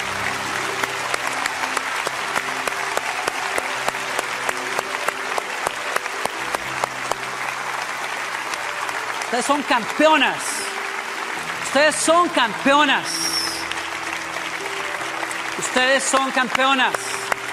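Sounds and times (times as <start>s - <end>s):
audience applauding: 0.0s - 17.5s
speech: 9.3s - 10.6s, 11.7s - 13.4s, 15.7s - 17.0s.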